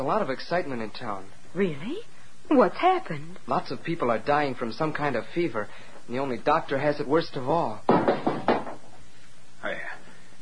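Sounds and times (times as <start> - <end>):
speech: 0.0 - 7.9
basin knocked to the floor: 7.9 - 8.8.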